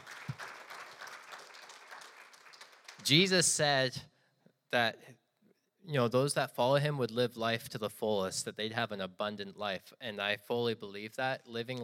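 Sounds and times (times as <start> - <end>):
audience applause: 0.0 - 3.3
speech: 3.0 - 4.1, 4.7 - 5.2, 5.9 - 11.8.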